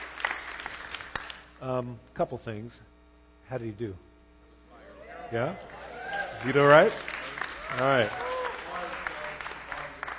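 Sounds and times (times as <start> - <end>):
audience applauding: 0.0 - 1.4, 5.3 - 10.1
speech: 1.6 - 4.1, 5.3 - 5.8, 6.4 - 7.1, 7.7 - 8.2.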